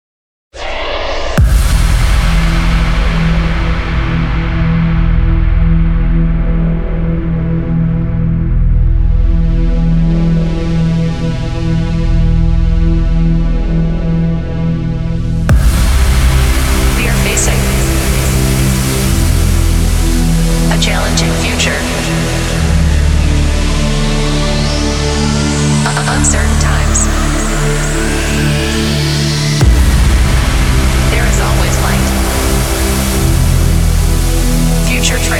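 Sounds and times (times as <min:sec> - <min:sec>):
future trance intro: 0:00.6 - 0:35.3.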